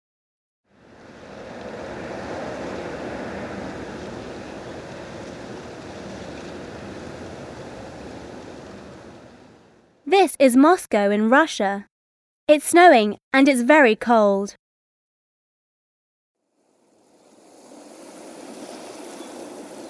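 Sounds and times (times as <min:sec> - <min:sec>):
rain falling in London: 0:00.8 - 0:09.9, 0:16.8 - 0:19.8
speech: 0:10.1 - 0:11.9, 0:12.5 - 0:14.6.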